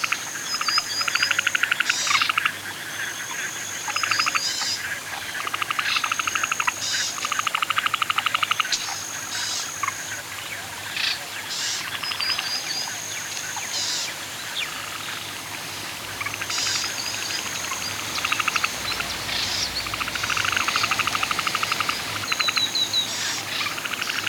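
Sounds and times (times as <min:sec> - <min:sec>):
nature sounds at a lake at night: 0:00.0 - 0:24.2
canoeing on a lake at night: 0:15.1 - 0:24.2.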